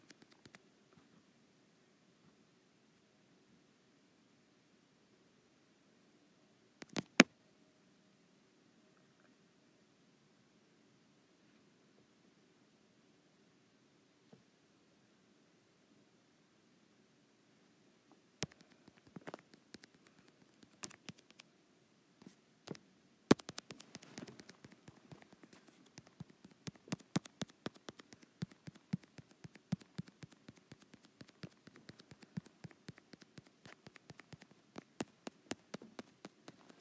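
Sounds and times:
fingers tapping on a touch screen: 6.8 - 7.3, 18.4 - 21.4, 23.3 - 36.7.

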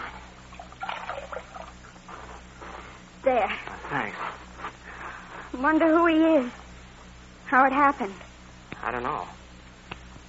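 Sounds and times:
steady low hum: 0.0 - 10.2
water poured to wash a bullet wound in a man's chest: 0.5 - 1.9
speech: 3.3 - 4.4, 5.6 - 6.6, 7.5 - 8.2, 8.8 - 9.4.

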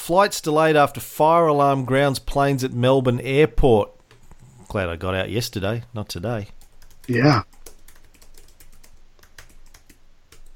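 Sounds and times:
speech: 0.1 - 4.0, 4.7 - 7.6
typing on a computer keyboard: 6.6 - 10.5.

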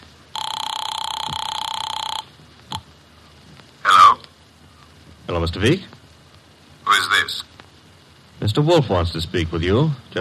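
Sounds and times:
telephone bell ringing: 0.3 - 2.3
speech: 5.3 - 6.0, 8.4 - 10.1.

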